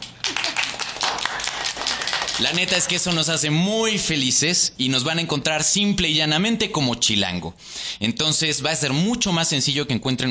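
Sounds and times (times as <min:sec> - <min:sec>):
applause: 0:00.0 - 0:03.4
speech: 0:02.4 - 0:10.2.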